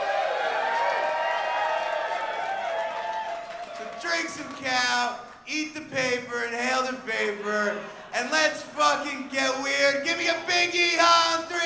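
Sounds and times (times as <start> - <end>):
crowd applause: 0.0 - 4.7
speech: 4.0 - 11.6.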